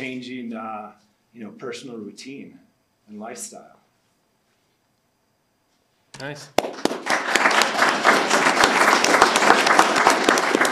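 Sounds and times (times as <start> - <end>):
speech: 0.0 - 3.8, 6.2 - 7.2
crowd clapping: 6.6 - 10.7.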